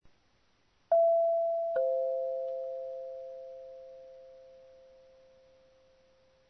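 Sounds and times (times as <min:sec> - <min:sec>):
doorbell: 0:00.9 - 0:06.0.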